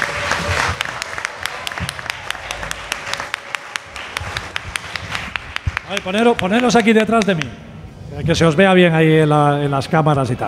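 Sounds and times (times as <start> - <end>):
audience applause: 0.0 - 7.5
speech: 5.9 - 10.4.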